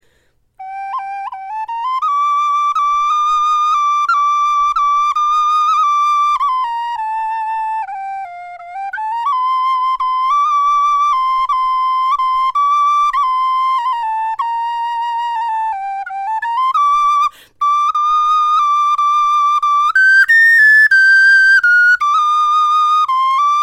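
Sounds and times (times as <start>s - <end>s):
bone flute melody: 0.6s - 23.6s.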